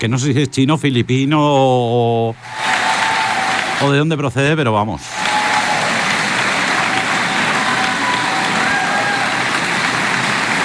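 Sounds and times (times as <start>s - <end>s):
speech: 0.0s - 2.7s, 3.8s - 5.2s
long audience applause: 2.4s - 4.1s, 5.0s - 10.6s.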